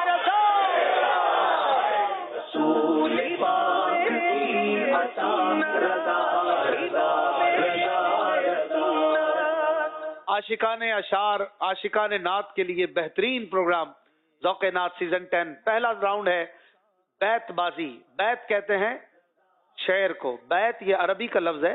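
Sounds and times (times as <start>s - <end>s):
crowd at a naat recitation competition shouting a religious slogan: 0.0s - 9.4s
speech: 10.4s - 16.6s, 17.2s - 19.1s, 19.8s - 21.7s.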